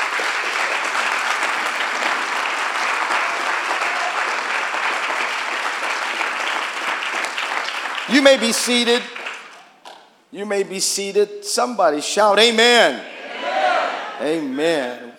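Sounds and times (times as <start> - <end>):
audience round of applause: 0.0 - 9.6
speech: 8.1 - 9.2, 10.3 - 13.1, 14.2 - 15.1.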